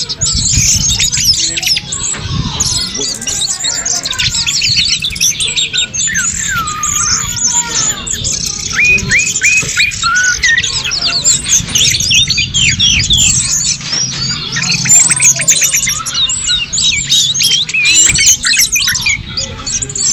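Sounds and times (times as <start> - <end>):
bird song: 0.0 - 20.1.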